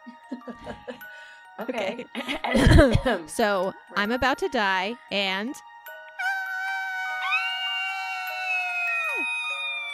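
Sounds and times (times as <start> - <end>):
speech: 0.0 - 1.0, 1.6 - 5.7
person imitating a banshee scream: 6.2 - 9.9.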